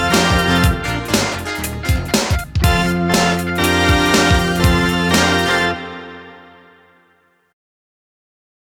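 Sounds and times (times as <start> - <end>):
OB-8 synthesizer funk music: 0.0 - 6.9.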